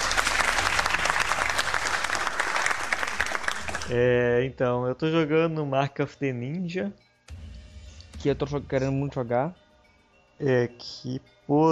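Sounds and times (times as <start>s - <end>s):
clapping applause: 0.0s - 4.0s
speech: 3.9s - 7.0s, 8.2s - 9.6s, 10.4s - 11.6s.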